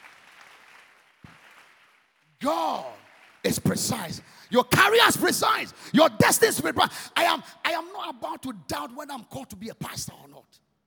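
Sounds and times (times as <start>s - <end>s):
audience clapping: 0.0s - 4.1s
speech: 2.4s - 10.7s.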